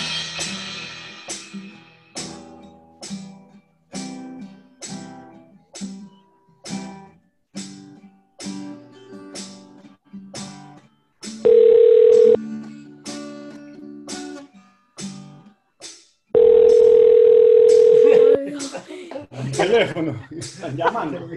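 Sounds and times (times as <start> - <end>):
ringback tone of an outgoing telephone call: 11.5 - 12.4, 16.4 - 18.4
people talking and laughing: 17.9 - 21.3.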